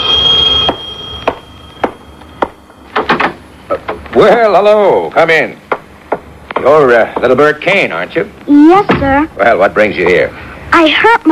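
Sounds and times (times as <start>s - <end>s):
doorbell ringing: 0.0s - 3.0s
speech: 4.2s - 5.6s, 6.6s - 11.3s.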